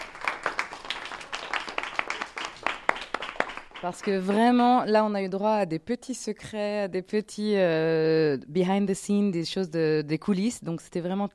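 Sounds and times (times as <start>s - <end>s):
audience applause: 0.0s - 4.5s
speech: 3.8s - 11.3s.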